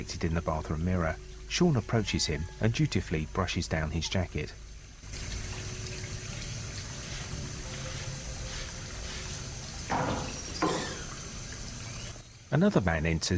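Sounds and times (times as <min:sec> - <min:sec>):
speech: 0:00.0 - 0:04.6, 0:12.5 - 0:13.3
water running from a tap into a bathroom wash basin: 0:00.0 - 0:12.6
water splashing: 0:05.0 - 0:12.2.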